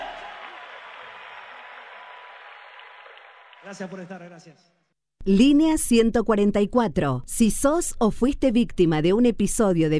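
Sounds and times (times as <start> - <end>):
audience applause: 0.0 - 4.4
speech: 3.6 - 9.9.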